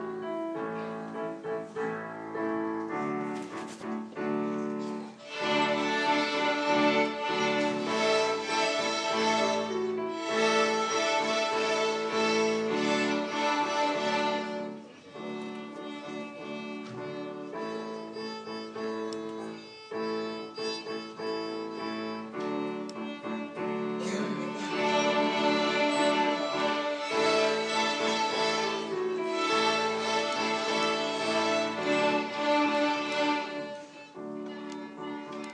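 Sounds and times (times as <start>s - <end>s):
violins: 0.0s - 35.5s.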